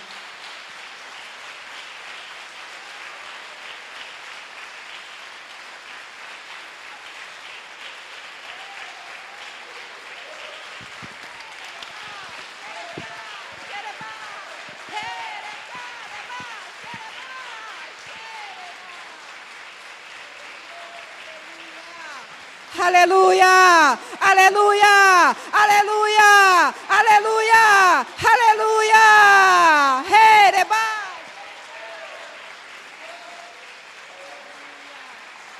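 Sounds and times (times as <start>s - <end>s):
audience applauding: 0.0s - 35.5s
speech: 22.8s - 29.1s.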